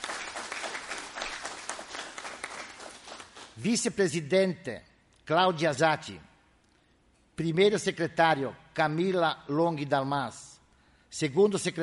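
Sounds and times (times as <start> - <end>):
audience applause: 0.0 - 3.6
speech: 3.6 - 6.3, 7.4 - 10.5, 11.1 - 11.8.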